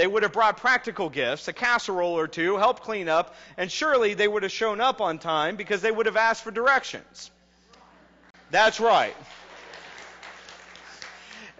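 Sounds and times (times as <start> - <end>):
speech: 0.0 - 7.4, 8.5 - 9.4
audience applause: 8.9 - 11.5.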